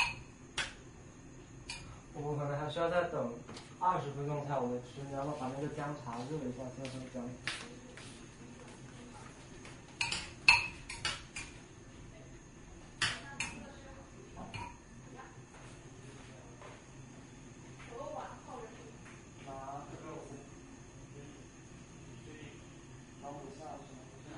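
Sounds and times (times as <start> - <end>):
low hum: 0.0 - 24.3
speech: 2.2 - 7.6
kitchen utensils and dishes clinking while cooking: 10.0 - 11.6.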